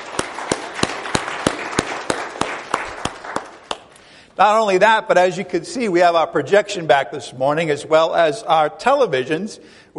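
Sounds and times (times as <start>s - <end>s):
audience applause: 0.0s - 3.9s
speech: 4.4s - 9.9s.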